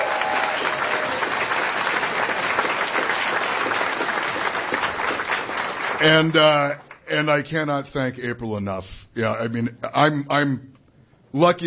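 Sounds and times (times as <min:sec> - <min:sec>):
audience applause: 0:00.0 - 0:07.0
speech: 0:06.0 - 0:10.7, 0:11.3 - 0:11.6.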